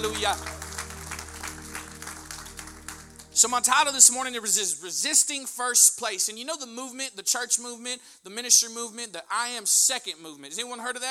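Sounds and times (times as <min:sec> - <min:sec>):
speech: 0:00.0 - 0:00.6, 0:03.4 - 0:11.0
audience round of applause: 0:00.0 - 0:04.1
low sustained notes humming: 0:00.0 - 0:04.5.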